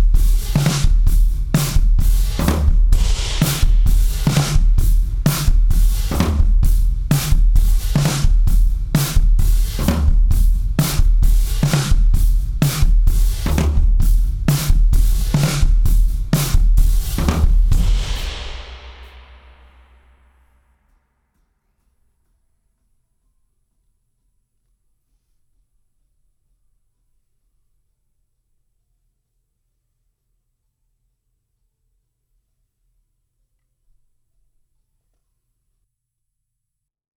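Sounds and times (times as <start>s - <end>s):
drums: 0.0s - 22.3s.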